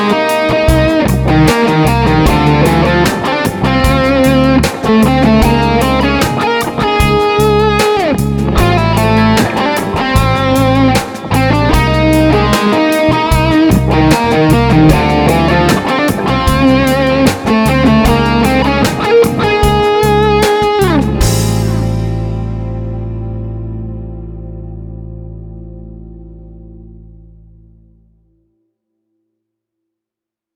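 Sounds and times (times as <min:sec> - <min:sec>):
band playing: 0:00.0 - 0:23.8
lead guitar through Neve mic preamp: 0:00.0 - 0:28.5.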